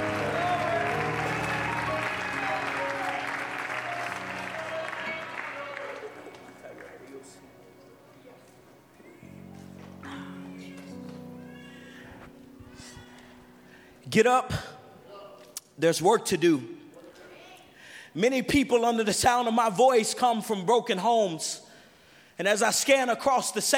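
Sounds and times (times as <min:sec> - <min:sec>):
audience clapping: 0:00.0 - 0:07.6
speech: 0:14.2 - 0:14.7, 0:15.8 - 0:16.8, 0:18.2 - 0:21.6, 0:22.4 - 0:23.7.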